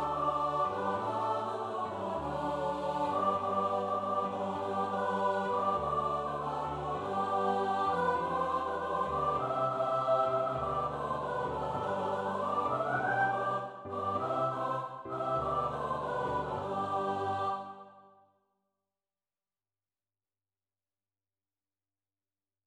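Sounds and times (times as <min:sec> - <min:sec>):
piano: 0:00.0 - 0:18.0
SATB choir singing: 0:00.0 - 0:18.1.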